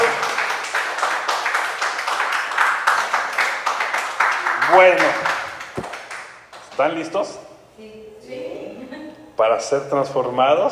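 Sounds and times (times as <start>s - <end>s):
audience clapping: 0.0s - 6.8s
speech: 4.7s - 5.3s, 6.8s - 7.9s, 9.4s - 10.6s.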